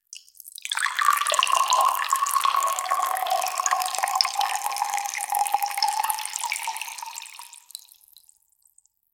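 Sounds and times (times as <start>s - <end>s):
shields draining until empty: 0.7s - 7.7s.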